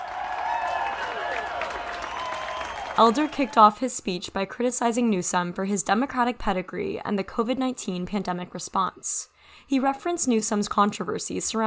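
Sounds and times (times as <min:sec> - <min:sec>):
crowd applauding wildly: 0:00.0 - 0:03.6
speech: 0:03.0 - 0:11.6.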